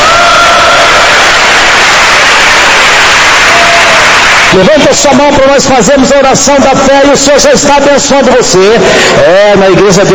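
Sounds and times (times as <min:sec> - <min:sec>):
audience clapping: 0:00.0 - 0:05.2
speech: 0:04.6 - 0:10.1.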